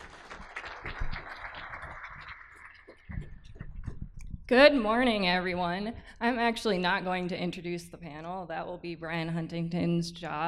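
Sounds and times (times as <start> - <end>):
audience applause: 0.0 - 3.9
speech: 4.5 - 10.4.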